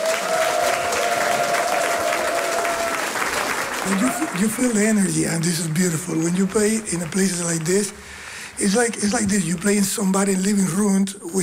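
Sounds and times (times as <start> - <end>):
audience applause: 0.0 - 8.2
speech: 3.9 - 11.4.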